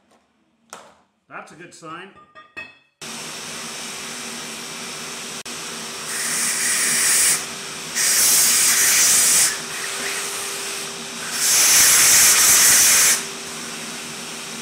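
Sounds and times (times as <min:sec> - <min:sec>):
speech: 0:01.4 - 0:02.4
hammer drill drilling masonry: 0:03.0 - 0:14.5.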